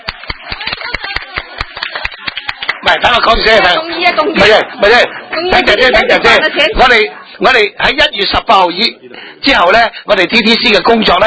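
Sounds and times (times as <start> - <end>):
small group hand clapping at a committee meeting: 0.0 - 3.0
speech: 2.9 - 11.2.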